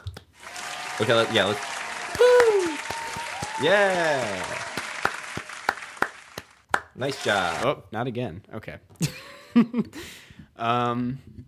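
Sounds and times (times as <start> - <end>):
applause sound effect: 0.4 - 7.6
speech: 1.0 - 2.3, 3.6 - 4.7, 7.0 - 11.4.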